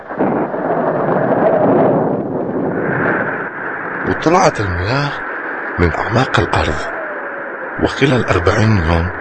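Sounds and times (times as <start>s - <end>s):
thunder: 0.1s - 4.1s
heavy rain: 4.0s - 7.0s, 7.7s - 9.1s
speech: 4.2s - 6.9s, 7.8s - 9.1s.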